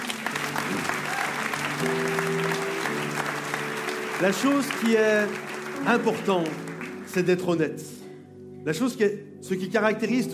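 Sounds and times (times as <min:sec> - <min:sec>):
audience applause: 0:00.0 - 0:07.5
speech: 0:04.2 - 0:08.0, 0:08.6 - 0:10.3.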